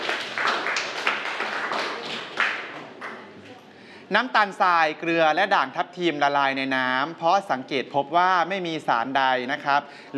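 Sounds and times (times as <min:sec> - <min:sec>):
students clapping hands: 0:00.0 - 0:03.3
speech: 0:04.1 - 0:10.1.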